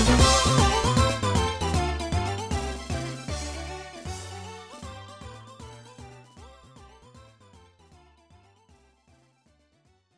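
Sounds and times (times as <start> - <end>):
stage four boss battle game background music: 0.0 - 6.4.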